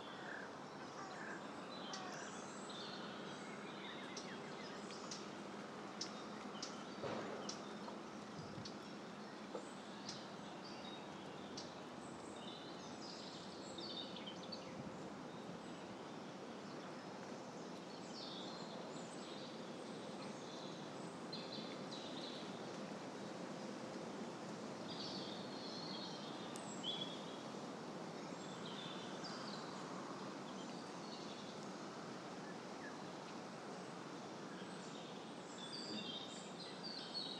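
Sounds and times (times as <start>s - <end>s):
birds: 0.0s - 24.0s, 24.8s - 37.3s
wind: 0.0s - 37.3s.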